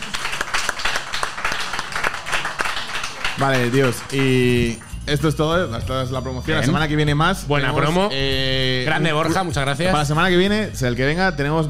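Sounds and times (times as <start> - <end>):
small audience clapping: 0.0 - 5.3
speech: 3.4 - 11.6.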